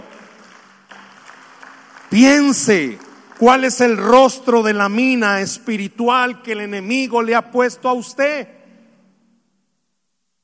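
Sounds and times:
audience applause: 0:00.0 - 0:04.4
speech: 0:02.1 - 0:08.6.

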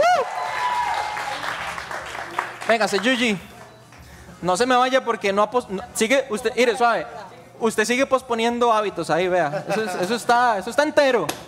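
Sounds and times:
bright vocal whoop: 0:00.0 - 0:01.4
audience applause: 0:00.0 - 0:03.5
speech: 0:02.7 - 0:03.5, 0:04.4 - 0:11.4
laughter: 0:09.4 - 0:10.6.

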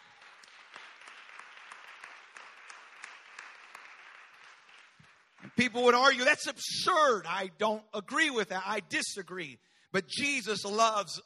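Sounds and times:
audience clapping hands: 0:00.0 - 0:06.4
speech: 0:05.6 - 0:11.2.

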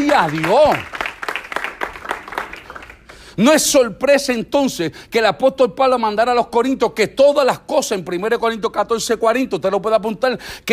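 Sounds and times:
audience applauding: 0:00.0 - 0:03.3
speech: 0:00.1 - 0:01.0, 0:03.4 - 0:10.7.

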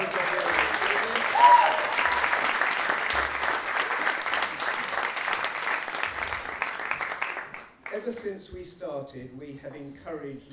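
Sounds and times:
audience applause: 0:00.0 - 0:07.9
speech: 0:08.1 - 0:10.5.

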